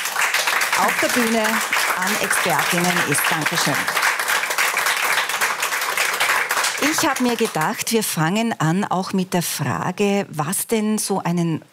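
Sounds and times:
audience applause for a panel of expert speakers: 0:00.0 - 0:07.8
speech: 0:00.8 - 0:04.1, 0:06.9 - 0:11.7.

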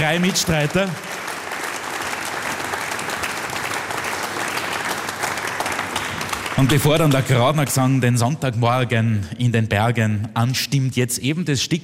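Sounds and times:
speech: 0:00.0 - 0:01.2, 0:06.6 - 0:11.8
audience applause: 0:00.0 - 0:07.5.

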